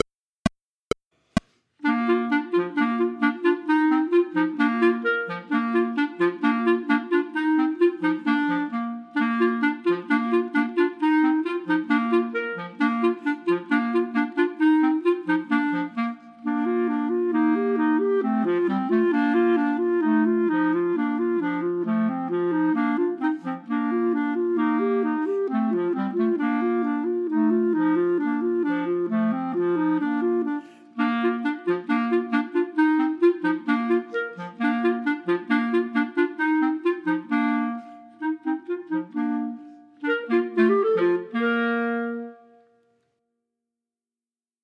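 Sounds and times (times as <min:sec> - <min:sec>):
ecossaise chamber music for clarinets minus first part: 0:01.8 - 0:43.2.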